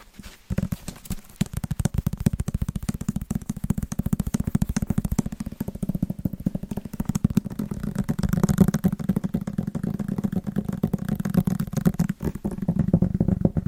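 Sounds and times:
fast rhythmic tapping on Christmas presents: 0:00.4 - 0:13.6.

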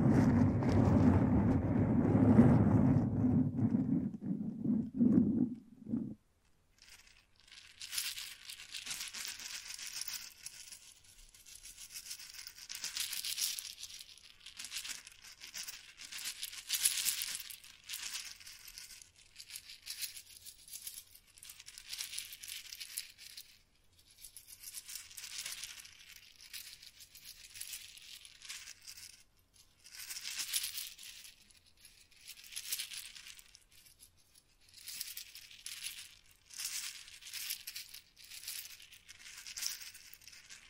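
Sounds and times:
loud low rumbling microphone rub: 0:00.0 - 0:06.2.

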